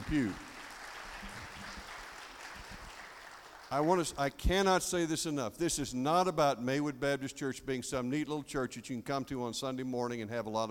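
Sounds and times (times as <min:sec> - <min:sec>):
audience applauding: 0:00.0 - 0:04.2
speech: 0:00.1 - 0:00.5, 0:03.7 - 0:10.6.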